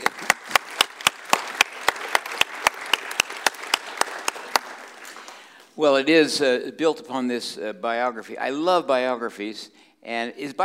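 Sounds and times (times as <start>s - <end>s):
audience applause: 0.0s - 5.7s
one sharp clapper keeping a quick even rhythm: 0.0s - 5.8s
speech: 5.8s - 10.6s.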